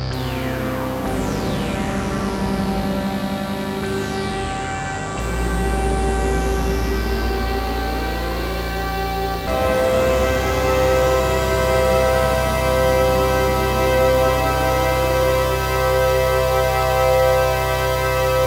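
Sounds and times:
Oberheim OB-8 polyphonic portamento synth comping: 0.2s - 18.4s.

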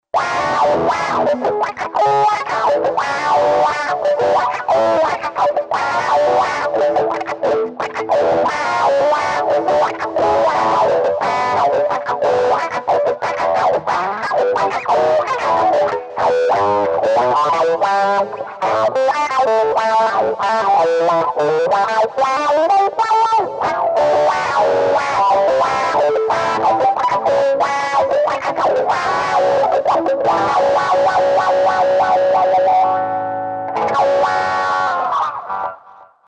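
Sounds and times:
wah effect on Digitech RP200: 0.2s - 36.0s.

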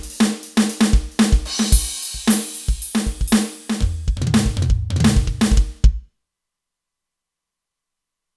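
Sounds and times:
studio drum kit on a synthesizer: 0.0s - 6.1s.

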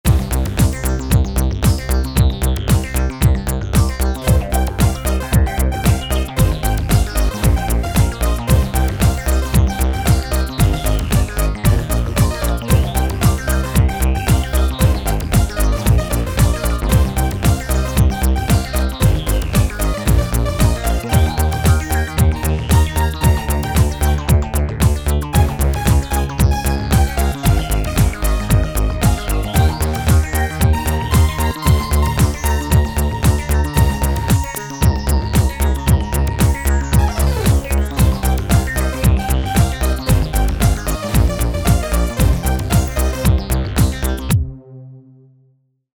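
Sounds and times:
LCR synth: 0.1s - 45.6s.

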